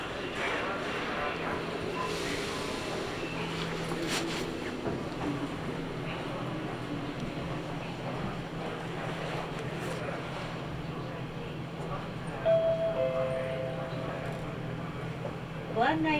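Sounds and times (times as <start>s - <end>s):
Nagoya Railroad Mikawa Line train running: 0.0s - 16.1s
murmur of voices: 0.0s - 16.1s
short high tone: 12.5s - 14.4s.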